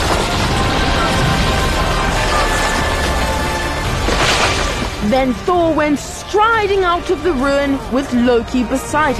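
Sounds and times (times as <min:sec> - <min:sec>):
roof and walls crashing down: 0:00.0 - 0:05.1
speech: 0:05.1 - 0:09.1.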